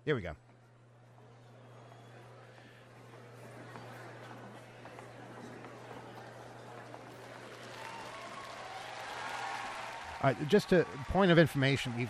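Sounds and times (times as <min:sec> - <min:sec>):
speech: 0:00.0 - 0:00.5, 0:10.2 - 0:12.0
audience applause: 0:03.7 - 0:12.0.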